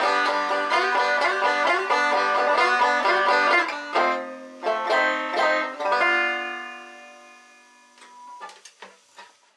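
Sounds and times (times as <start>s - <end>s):
banjo solo: 0.0s - 8.0s.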